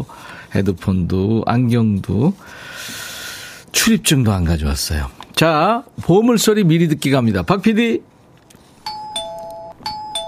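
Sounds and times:
speech: 0:00.0 - 0:03.0, 0:03.8 - 0:08.1
front door doorbell ringing: 0:08.8 - 0:10.2.

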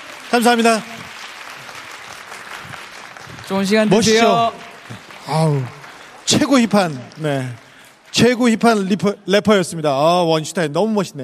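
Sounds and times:
audience applause: 0:00.0 - 0:08.9
speech: 0:00.3 - 0:01.0, 0:03.5 - 0:07.6, 0:08.2 - 0:11.2.

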